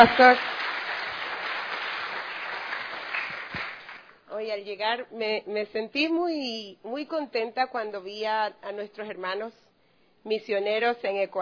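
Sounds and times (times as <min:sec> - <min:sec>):
speech: 0:00.0 - 0:00.6, 0:04.4 - 0:09.6, 0:10.2 - 0:11.3
warm applause from church audience: 0:00.0 - 0:04.2.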